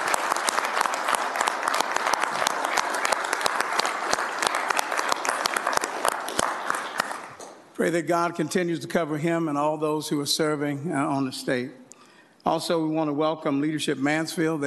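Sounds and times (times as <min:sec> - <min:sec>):
round of applause: 0:00.0 - 0:07.5
speech: 0:07.8 - 0:11.8, 0:12.5 - 0:14.6.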